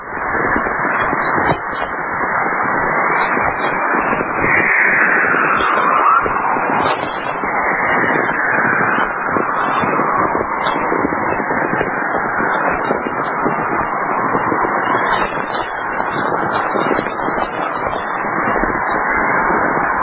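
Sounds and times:
aurora borealis whistling radio emissions in Manitoba: 0.0 - 20.0.

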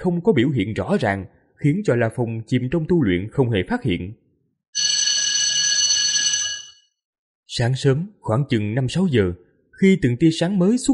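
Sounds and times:
speech: 0.0 - 4.2, 7.6 - 10.9
alarm bell ringing: 4.8 - 6.9.

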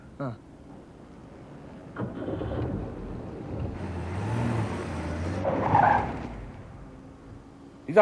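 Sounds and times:
car engine roaring as the vehicle swerves: 0.7 - 7.8
tires squealing while skidding: 3.5 - 6.5.

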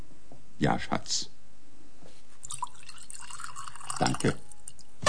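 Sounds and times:
speech: 0.6 - 1.3, 4.0 - 4.4
drink being poured into a glass: 2.4 - 4.9.

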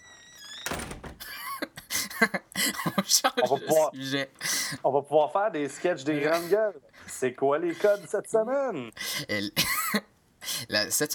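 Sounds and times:
faint squeaky door creak: 0.0 - 1.4
rattling clicks of the door latch settling: 0.4 - 1.3
door swinging shut with a dull thunk: 0.4 - 1.4
speech: 2.2 - 10.1, 10.7 - 11.1.

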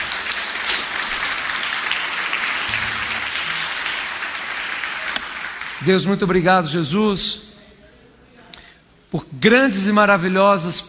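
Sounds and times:
church congregation applauding at a worship service: 0.0 - 6.1
speech: 5.8 - 7.5, 9.1 - 10.8.

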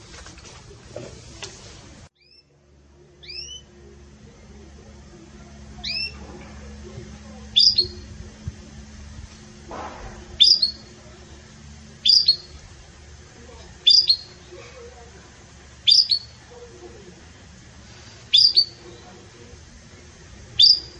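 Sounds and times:
soft low hum: 0.0 - 20.9
Belgian canary chirps: 2.2 - 2.5, 3.2 - 3.8, 5.6 - 6.2, 7.4 - 8.2, 10.4 - 11.0, 12.0 - 12.6, 13.7 - 14.9, 15.7 - 16.6, 18.1 - 19.3, 20.5 - 20.9.

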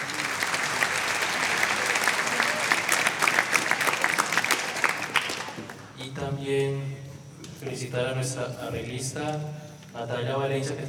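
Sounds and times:
symphonic concert audience applause: 0.0 - 5.9
faint crowd murmur: 0.0 - 6.0
speech: 7.7 - 10.8.

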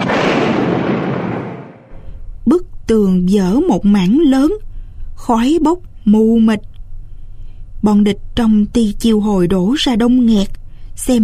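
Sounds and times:
violent explosion: 0.0 - 2.0
speech: 2.9 - 6.7, 7.8 - 11.2.

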